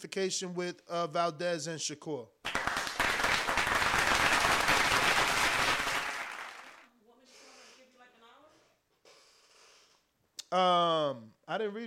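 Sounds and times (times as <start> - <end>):
speech: 0.0 - 2.4, 10.5 - 11.8
crowd clapping: 2.4 - 6.9.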